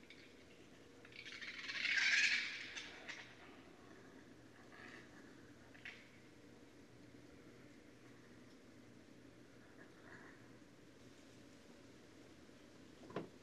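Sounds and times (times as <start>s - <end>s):
raccoon squealing: 1.1s - 3.3s.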